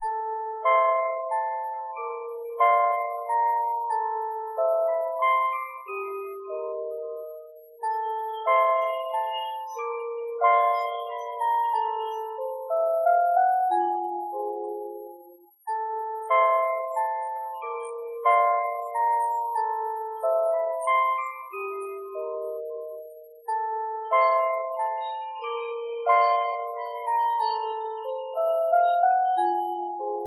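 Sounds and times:
gothic music box: 0:00.0 - 0:30.2.

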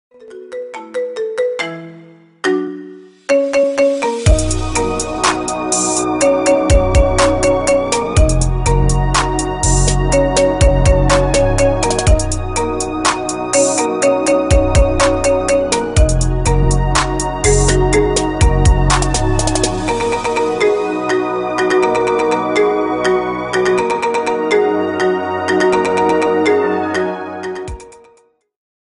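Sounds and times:
marimba: 0:00.1 - 0:28.2.

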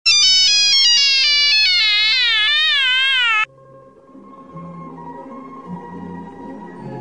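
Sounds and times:
Russian mobile phone ringtone: 0:00.1 - 0:03.5.

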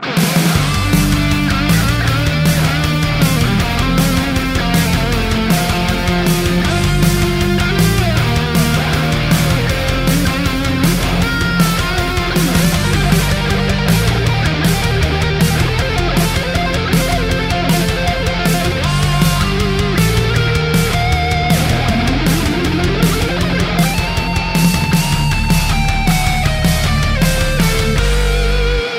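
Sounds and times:
guitar solo: 0:00.0 - 0:28.9.

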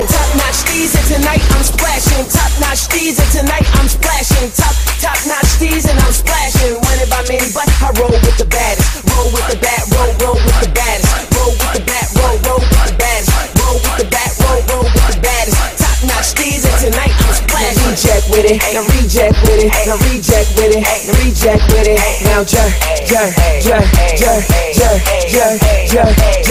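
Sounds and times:
DJ scratching: 0:00.0 - 0:26.4.

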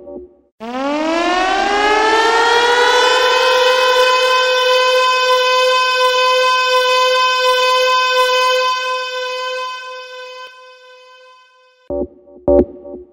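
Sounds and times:
alarm tone: 0:00.6 - 0:12.6.

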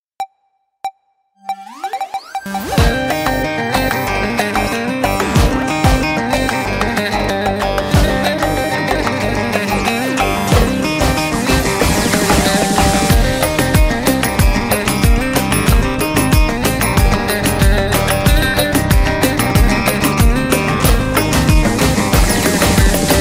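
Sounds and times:
baglama from Ankara playing: 0:02.5 - 0:23.1.

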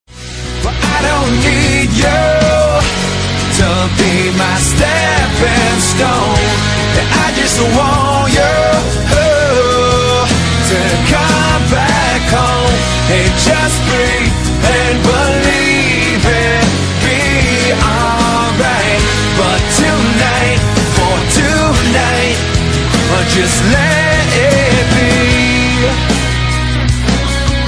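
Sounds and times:
acoustic music: 0:00.1 - 0:27.6.

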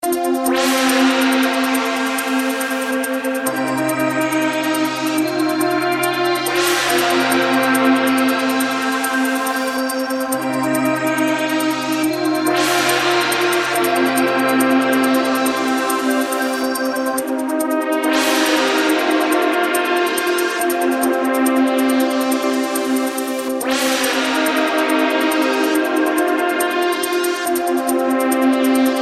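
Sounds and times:
electronic music: 0:00.0 - 0:29.0.

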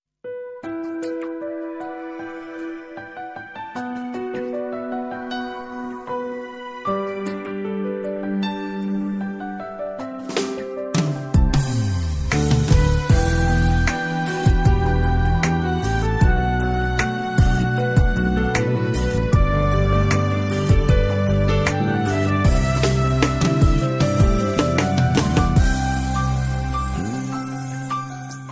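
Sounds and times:
piano music: 0:00.2 - 0:28.5.

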